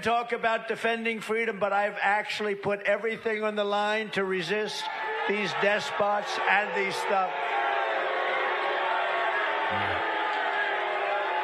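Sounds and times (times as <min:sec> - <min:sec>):
speech: 0:00.0 - 0:07.6
large crowd booing: 0:04.8 - 0:11.4.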